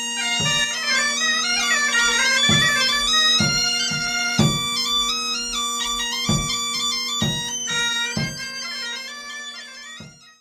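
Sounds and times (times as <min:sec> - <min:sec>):
Breton gavotte dance music from Brittany France: 0:00.2 - 0:08.8.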